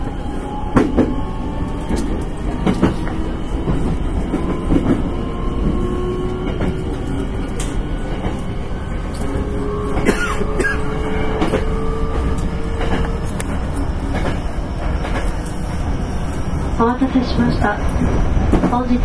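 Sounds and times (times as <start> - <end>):
train whining tones: 0.0 - 16.7
Hankyu 9300 series express train running on the Kyoto Line: 0.0 - 19.0
train wheels clacking over rail joints: 1.8 - 15.6.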